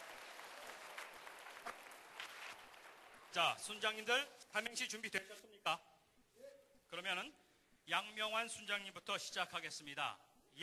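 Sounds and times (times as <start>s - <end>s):
audience applause: 0.0s - 3.4s
speech: 3.4s - 5.9s, 6.9s - 10.6s.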